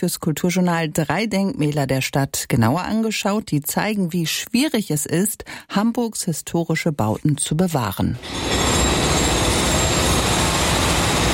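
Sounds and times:
speech: 0.0 - 9.1
construction site machinery roar at Jungfernstieg: 8.2 - 11.3.

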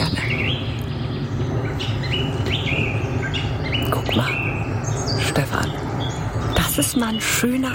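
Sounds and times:
birds chirping in a cemetery: 0.0 - 7.7
speech: 6.9 - 7.7.

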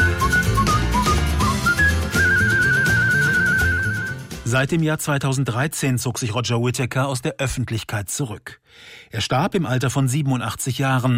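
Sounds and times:
melodic human whistling: 0.0 - 4.3
speech: 4.5 - 11.1.

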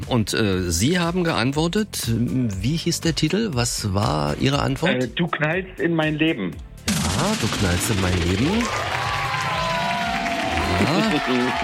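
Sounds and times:
speech: 0.1 - 8.9, 10.8 - 11.6
crowd cheering and applauding: 7.2 - 11.6.

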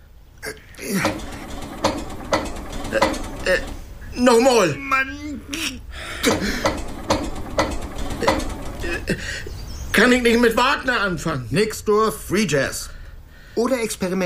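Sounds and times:
motor being cranked, failing to start: 0.8 - 4.1, 6.2 - 9.4
speech: 2.9 - 6.8, 9.1 - 12.9, 13.6 - 14.2.

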